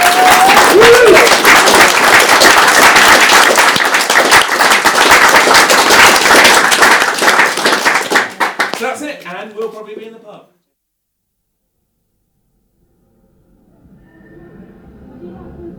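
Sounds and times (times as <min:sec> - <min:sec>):
audience applause: 0:00.0 - 0:09.0.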